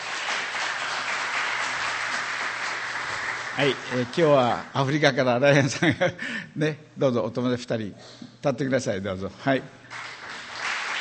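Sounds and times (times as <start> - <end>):
audience applause: 0.0 - 4.9, 9.9 - 11.0
speech: 3.6 - 10.0.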